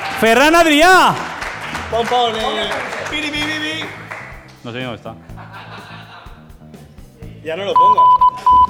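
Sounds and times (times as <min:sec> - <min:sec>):
audience applause: 0:00.0 - 0:04.5
speech: 0:00.2 - 0:01.3, 0:01.9 - 0:05.3, 0:07.4 - 0:08.6
laughter: 0:05.2 - 0:06.5.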